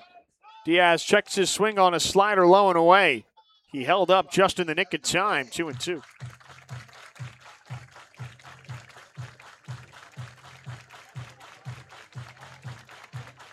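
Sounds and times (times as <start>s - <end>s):
speech: 0.7s - 6.4s
thumping music beat: 3.8s - 13.5s
stadium fans clapping along to music: 5.0s - 13.5s.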